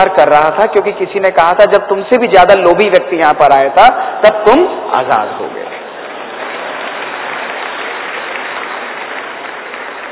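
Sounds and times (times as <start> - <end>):
speech: 0.0 - 5.7
audience clapping: 5.8 - 10.1.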